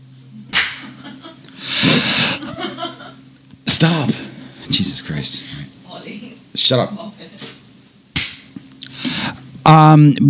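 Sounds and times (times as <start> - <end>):
low steady hum: 0.0 - 10.2
hand clap for an edit marker: 0.5 - 1.0, 8.2 - 8.6
breathy laughter: 1.0 - 3.2
speech: 3.8 - 4.2, 5.2 - 7.2, 9.7 - 10.2.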